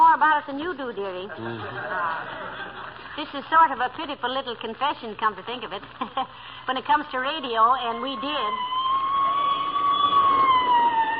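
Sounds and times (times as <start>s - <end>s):
speech: 0.4s - 8.9s
laughter: 1.3s - 3.2s
police squad car siren passing: 7.8s - 11.1s.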